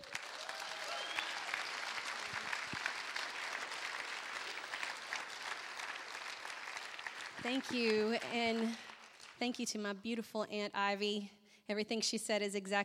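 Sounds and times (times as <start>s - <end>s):
audience applauding a speaker at a faith gathering: 0.0s - 9.4s
speech: 7.4s - 12.8s.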